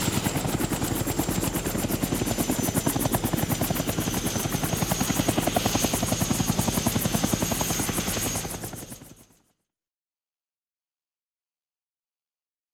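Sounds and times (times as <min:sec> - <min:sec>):
helicopter: 0:00.0 - 0:09.6.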